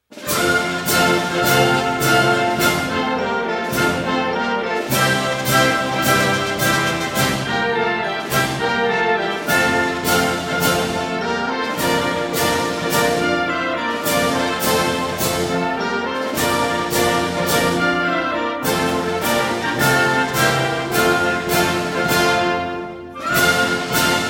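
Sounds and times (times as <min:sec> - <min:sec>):
march music: 0:00.0 - 0:24.2.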